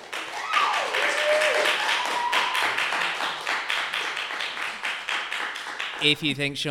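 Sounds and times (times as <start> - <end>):
audience clapping to vote: 0.0 - 6.4
whoop: 0.3 - 2.9
speech: 6.0 - 6.6.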